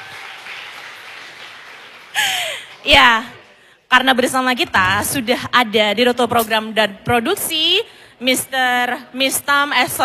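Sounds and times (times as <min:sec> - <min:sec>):
audience applause: 0:00.0 - 0:02.8
speech: 0:02.9 - 0:03.3, 0:03.9 - 0:10.0.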